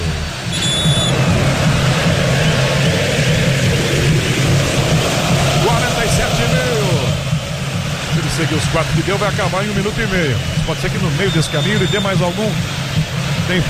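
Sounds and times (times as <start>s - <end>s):
football crowd singing at Morumbi stadium: 0.6s - 8.2s
speech: 8.7s - 12.8s, 13.5s - 13.6s.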